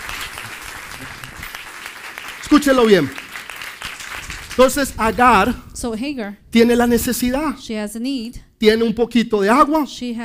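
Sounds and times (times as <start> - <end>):
audience applause: 0.0 - 5.0
speech: 2.6 - 3.2, 4.6 - 10.2.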